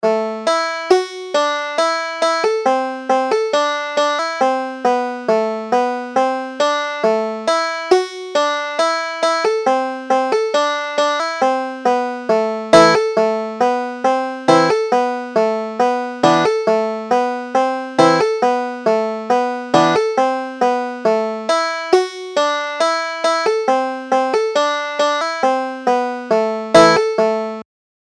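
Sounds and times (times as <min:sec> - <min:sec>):
banjo playing a carol: 0:00.0 - 0:27.6.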